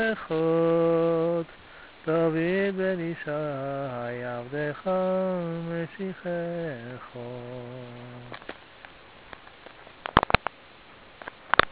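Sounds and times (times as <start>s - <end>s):
cantor singing prayer: 0.0s - 8.5s.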